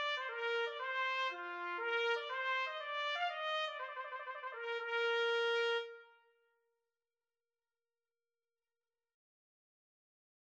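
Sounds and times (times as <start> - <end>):
trumpet: 0.0 - 6.4.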